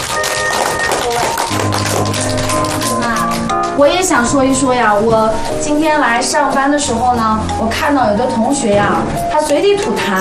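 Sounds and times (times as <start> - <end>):
applause: 0.0 - 3.8
speech: 3.8 - 10.2.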